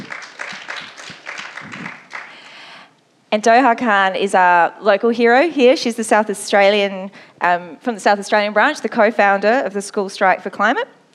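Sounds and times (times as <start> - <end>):
audience clapping: 0.0 - 2.7
speech: 3.3 - 11.0.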